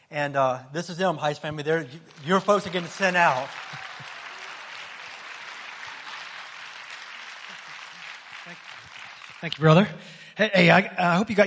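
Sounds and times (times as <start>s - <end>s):
speech: 0.1s - 3.7s, 9.4s - 11.4s
audience clapping and cheering: 1.8s - 9.9s.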